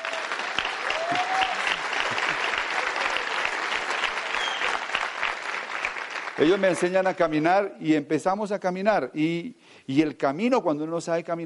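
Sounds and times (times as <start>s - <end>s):
audience applause: 0.0s - 7.0s
speech: 6.4s - 11.4s.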